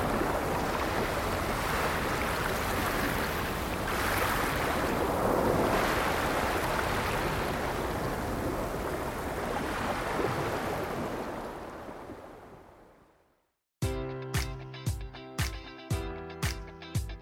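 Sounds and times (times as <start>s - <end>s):
ocean surf on shore: 0.0s - 12.8s
rhythmic beats with tones: 13.8s - 17.2s.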